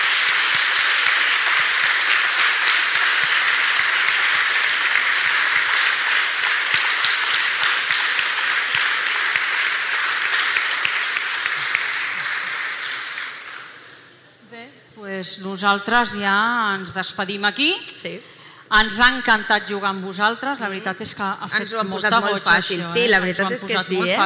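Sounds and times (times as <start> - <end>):
loud audience applause: 0.0 - 14.1
speech: 15.3 - 24.2.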